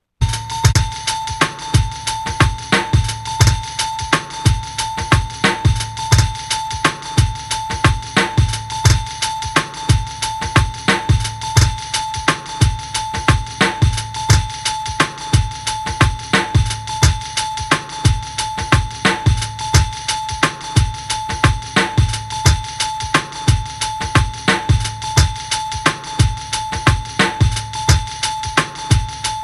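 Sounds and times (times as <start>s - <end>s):
gangsta bells: 0.4s - 29.4s.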